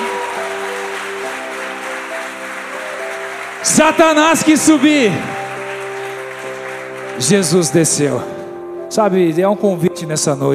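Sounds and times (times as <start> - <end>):
audience clapping: 0.0 - 8.3
speech: 3.6 - 5.4, 7.2 - 10.5.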